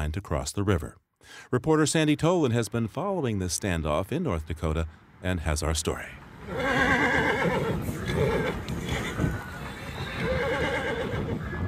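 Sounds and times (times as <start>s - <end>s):
speech: 0.0s - 7.6s
horses neighing: 6.4s - 11.4s
hoofbeats: 6.4s - 11.6s.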